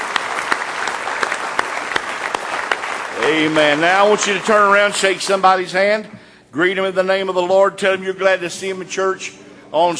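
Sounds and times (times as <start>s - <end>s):
audience clapping hands in praise: 0.0s - 5.7s
speech: 3.2s - 9.9s.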